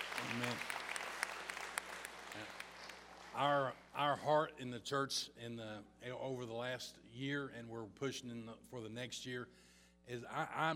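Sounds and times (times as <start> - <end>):
audience applause: 0.0 - 3.6
speech: 3.4 - 10.7.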